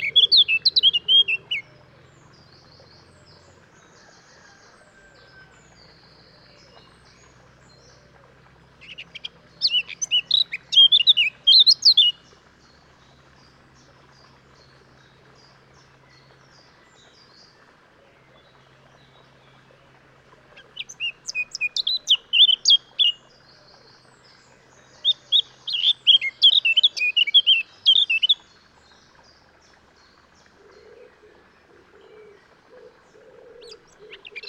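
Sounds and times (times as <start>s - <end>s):
Eurasian blackcap song: 0.0s - 3.8s, 5.3s - 17.6s, 20.6s - 34.4s.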